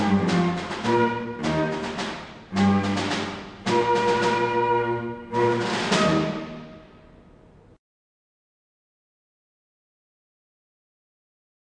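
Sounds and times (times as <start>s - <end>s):
cello: 0.0s - 6.8s
flute: 0.0s - 7.0s
snare drum: 0.0s - 7.0s
march with cello, flute and snare drum: 0.0s - 7.4s.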